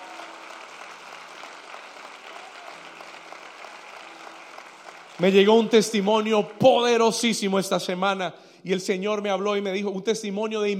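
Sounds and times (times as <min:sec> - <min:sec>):
audience applauding: 0:00.0 - 0:07.0
speech: 0:05.2 - 0:10.7.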